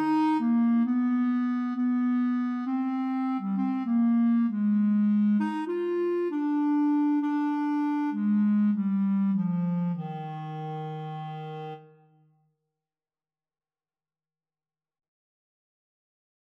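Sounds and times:
saxophone: 0:00.0 - 0:12.1
clarinet: 0:00.0 - 0:12.2.

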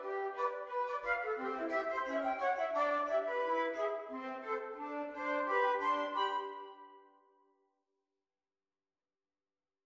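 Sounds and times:
flute trio playing a rag: 0:00.0 - 0:07.0.

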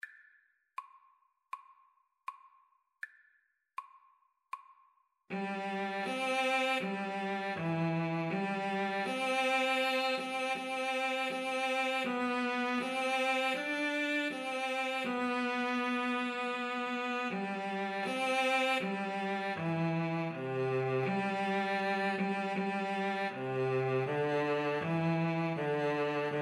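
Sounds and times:
violin and cello duet: 0:05.3 - 0:26.3.

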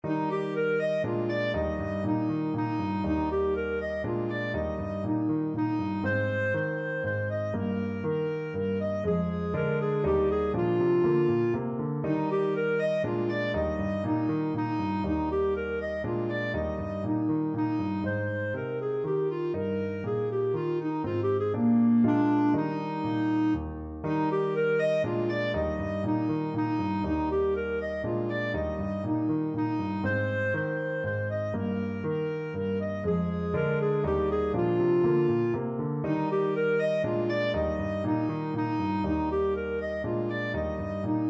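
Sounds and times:
clarinet playing a minuet: 0:00.0 - 0:41.2.

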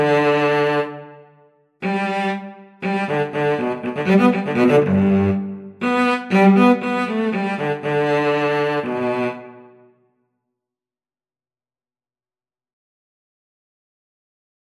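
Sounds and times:
viola and cello duet: 0:00.0 - 0:01.2, 0:01.8 - 0:09.8.

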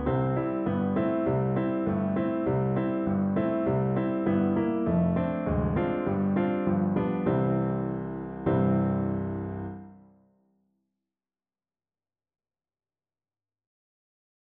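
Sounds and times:
four-hands piano duet: 0:00.0 - 0:10.1.

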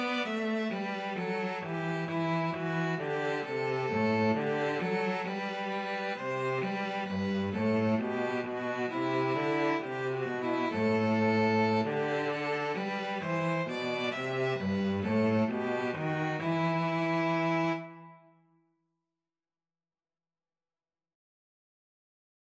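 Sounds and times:
string trio playing: 0:00.0 - 0:18.2.

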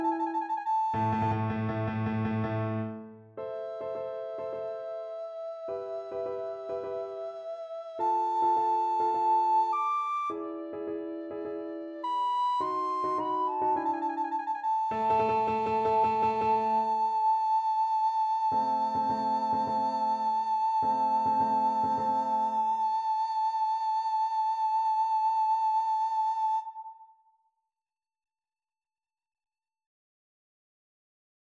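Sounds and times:
recorder playing classical piece: 0:00.0 - 0:02.0, 0:03.6 - 0:27.0.

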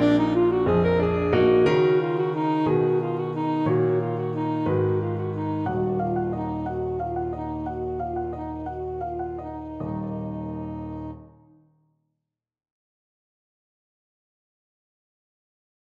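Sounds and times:
saxophone: 0:00.0 - 0:11.4.

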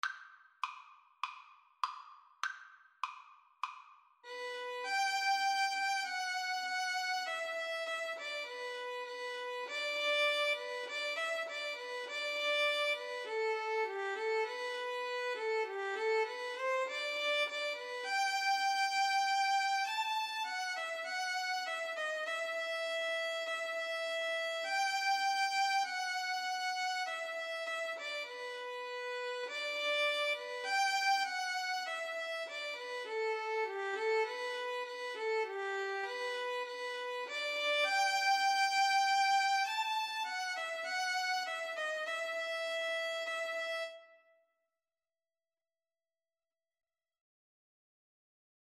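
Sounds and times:
violin: 0:04.2 - 0:44.3
violoncello: 0:04.3 - 0:44.2.

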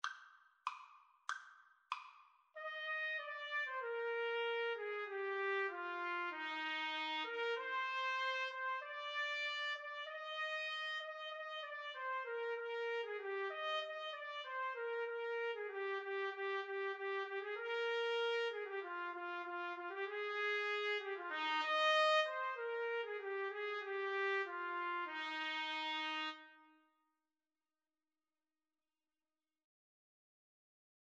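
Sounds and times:
trumpet duet: 0:02.6 - 0:26.8.

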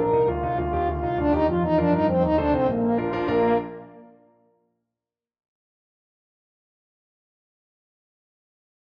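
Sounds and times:
French horn playing a galop: 0:00.0 - 0:04.1.

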